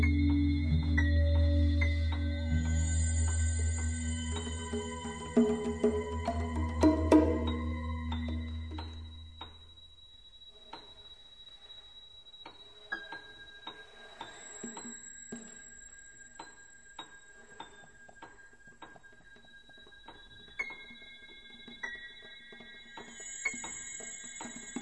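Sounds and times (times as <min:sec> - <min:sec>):
electronic instruments: 0:00.0 - 0:24.8
percussion: 0:00.0 - 0:24.8.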